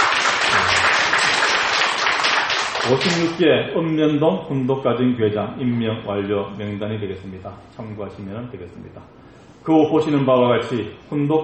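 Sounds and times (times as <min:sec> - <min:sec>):
audience applause: 0:00.0 - 0:03.3
speech: 0:02.9 - 0:11.4.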